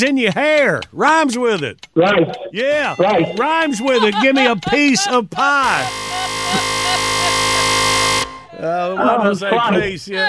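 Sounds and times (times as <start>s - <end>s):
speech: 0.0s - 7.1s, 8.6s - 10.2s
laughter: 0.0s - 10.2s
loud harsh game show buzzer: 5.6s - 8.6s.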